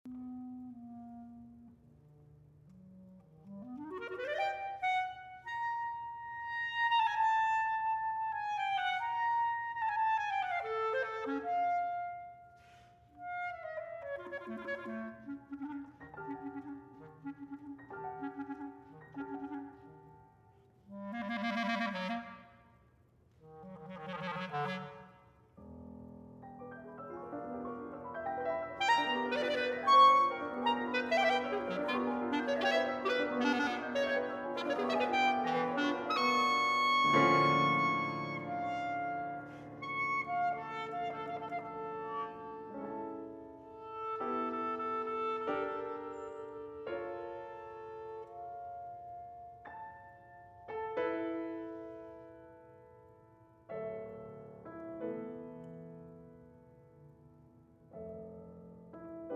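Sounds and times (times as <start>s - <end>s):
solo instrumental cadenza: 0.0s - 52.0s.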